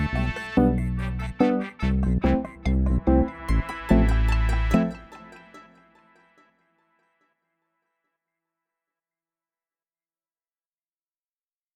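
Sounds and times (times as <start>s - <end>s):
reggae music: 0.0s - 6.1s.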